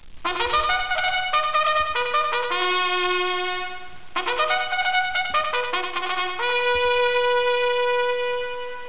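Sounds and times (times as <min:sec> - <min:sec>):
bugle: 0:00.3 - 0:08.8.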